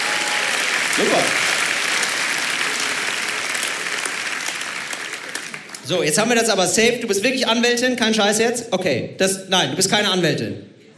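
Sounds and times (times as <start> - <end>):
audience applause: 0.0 - 5.9
speech: 1.0 - 1.4, 5.9 - 10.7.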